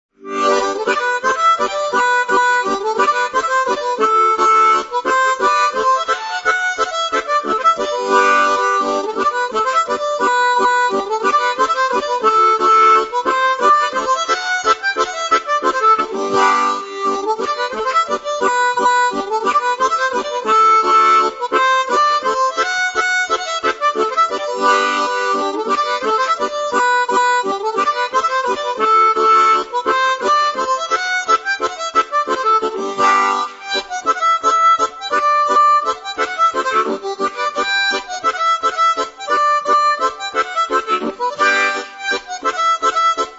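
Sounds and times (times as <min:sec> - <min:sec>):
mazurka: 0:00.2 - 0:43.3.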